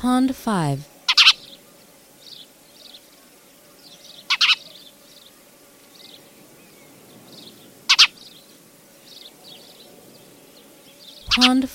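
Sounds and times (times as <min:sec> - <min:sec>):
speech: 0:00.0 - 0:00.9, 0:11.4 - 0:11.7
Spanish sparrow harsh paired chirps: 0:01.0 - 0:01.6, 0:03.8 - 0:05.3, 0:05.9 - 0:11.6
soft high twittering: 0:01.0 - 0:11.5.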